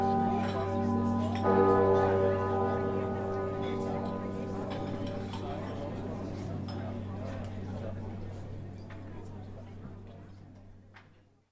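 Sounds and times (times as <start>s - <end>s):
large bell of a cathedral ringing: 0.0s - 10.1s.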